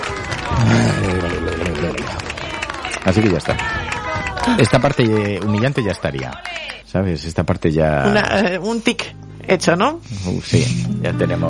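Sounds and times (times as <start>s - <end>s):
audience applause: 0.0s - 6.9s
speech: 3.1s - 3.8s, 4.4s - 11.4s.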